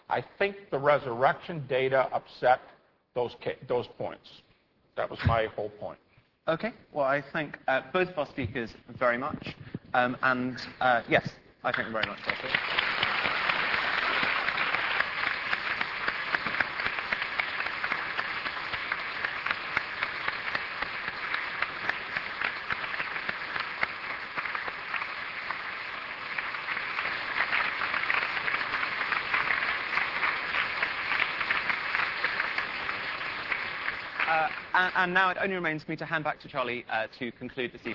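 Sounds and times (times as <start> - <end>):
speech: 0.1 - 4.4, 5.0 - 12.8, 35.0 - 37.9
audience applause: 11.8 - 35.0.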